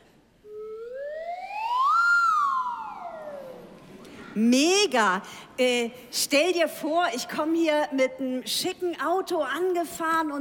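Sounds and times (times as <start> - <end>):
lotus flute slide whistle gliding up and down: 0.4 - 3.7
speech: 4.4 - 10.3.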